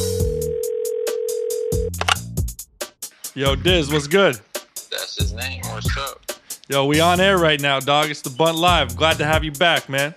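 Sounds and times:
rhythmic beat of music: 0.0s - 0.5s, 1.7s - 10.1s
ringback tone of an outgoing phone call: 0.0s - 1.9s
speech: 3.4s - 4.5s, 5.2s - 10.1s.

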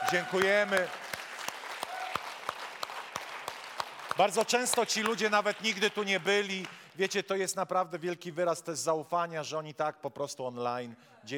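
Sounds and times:
audience applause: 0.0s - 6.8s
speech: 0.1s - 1.0s, 4.2s - 11.3s.

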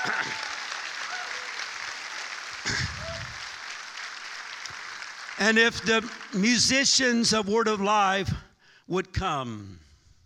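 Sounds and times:
crowd clapping hands: 0.0s - 7.2s
speech: 5.4s - 9.8s.

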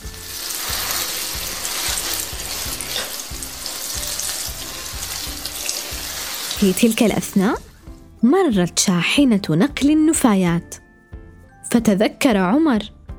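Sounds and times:
water filling a jug from a garden hose: 0.0s - 8.0s
speech: 6.6s - 10.8s, 11.7s - 13.0s.

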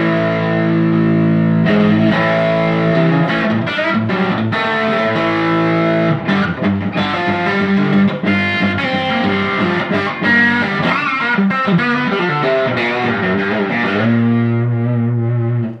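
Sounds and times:
electric guitar with Blackguard Telecaster pickup playing driven riff: 0.0s - 15.7s.

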